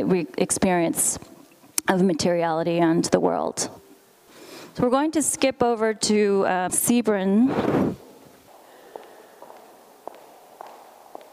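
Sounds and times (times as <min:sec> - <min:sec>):
speech: 0:00.0 - 0:03.8, 0:04.8 - 0:08.0
low hum: 0:00.0 - 0:11.3
footsteps of people walking through a gallery exhibition: 0:07.9 - 0:11.3.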